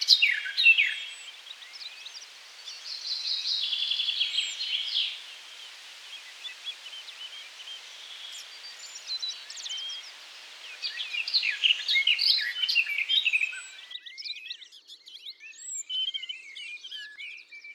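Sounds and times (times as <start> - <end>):
warbler: 0.0 - 13.9.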